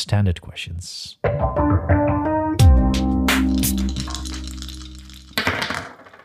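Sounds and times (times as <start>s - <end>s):
speech: 0.1s - 2.2s
jingle: 2.6s - 5.4s
dice rolling in a jingle: 3.5s - 6.2s.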